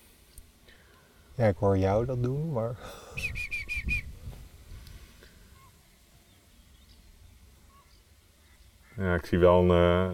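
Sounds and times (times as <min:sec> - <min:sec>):
speech: 0:01.4 - 0:03.4, 0:09.0 - 0:10.1
common greenshank call: 0:03.2 - 0:04.1, 0:07.6 - 0:09.2.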